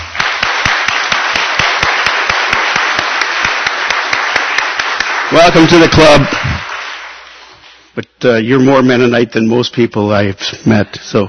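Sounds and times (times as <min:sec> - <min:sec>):
audience applause: 0:00.0 - 0:07.6
speech: 0:05.3 - 0:06.7, 0:08.0 - 0:11.2.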